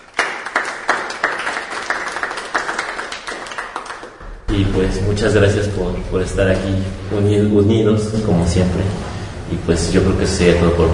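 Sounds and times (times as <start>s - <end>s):
audience clapping: 0.0s - 4.4s
speech: 4.5s - 10.9s.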